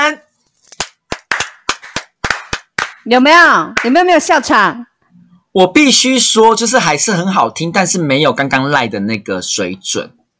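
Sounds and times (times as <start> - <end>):
hand claps: 0.7 - 3.1, 3.8 - 4.0
speech: 3.0 - 4.9, 5.5 - 10.2.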